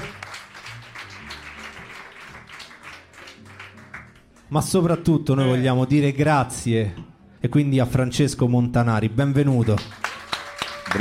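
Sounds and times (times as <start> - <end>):
audience applause: 0.0 - 4.5, 9.6 - 10.9
speech: 4.5 - 10.0.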